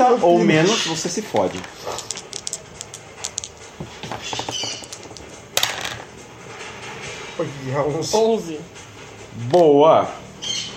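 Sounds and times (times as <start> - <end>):
speech: 0.1 - 2.2, 7.4 - 8.8, 9.4 - 10.2
d100 die clattering across a table: 1.3 - 6.1.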